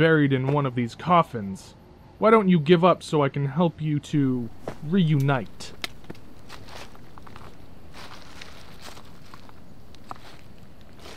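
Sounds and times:
speech: 0.0s - 5.8s
footsteps crunching over gritty uneven ground: 4.4s - 11.1s.

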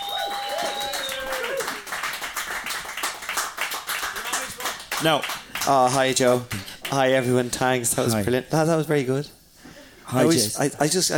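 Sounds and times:
audience applause: 0.0s - 7.1s
speech: 5.0s - 9.4s, 10.1s - 11.1s.

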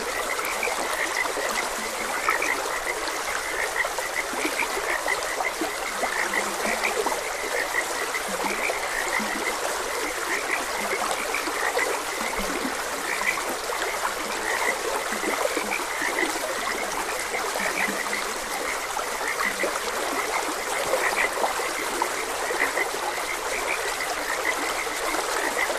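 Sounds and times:
chorus of frogs croaking: 0.0s - 25.7s
running water: 0.0s - 25.7s.

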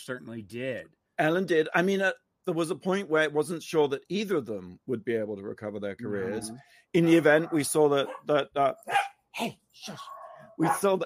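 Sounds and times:
speech: 0.0s - 11.0s
dog barking: 7.1s - 8.3s, 8.9s - 9.2s, 10.0s - 11.0s.

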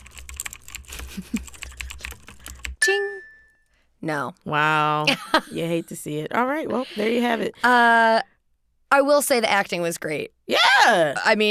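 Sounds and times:
typing on a computer keyboard: 0.0s - 2.8s
speech: 1.2s - 1.4s, 4.0s - 8.3s, 8.9s - 11.4s.

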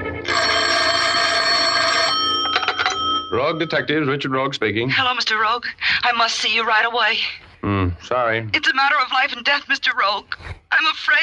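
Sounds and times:
telephone ringing: 0.0s - 5.2s
speech: 3.3s - 11.2s.

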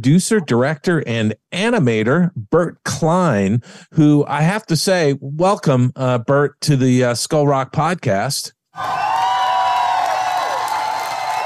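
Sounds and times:
speech: 0.0s - 9.1s
studio audience cheering wildly: 8.8s - 11.4s.

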